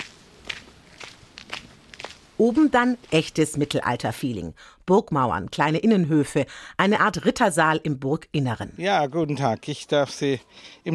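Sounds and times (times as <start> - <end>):
footsteps on a steep uphill footpath to Trifels Castle: 0.0 - 3.9
speech: 2.4 - 10.9.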